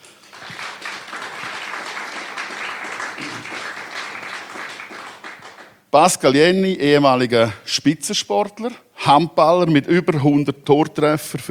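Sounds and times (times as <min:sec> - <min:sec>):
audience applause: 0:00.0 - 0:05.8
speech: 0:06.0 - 0:11.4.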